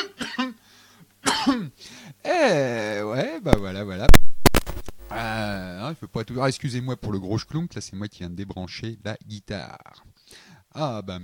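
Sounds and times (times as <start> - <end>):
singer coughing and clearing throat after singing live: 0.0 - 0.6, 1.2 - 1.7
speech: 1.5 - 2.8, 3.4 - 4.3, 6.0 - 11.2.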